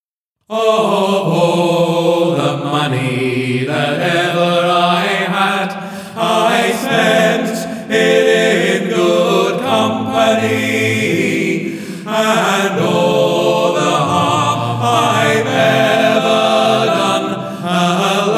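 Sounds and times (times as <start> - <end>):
person singing practice without piano: 0.5 - 18.3.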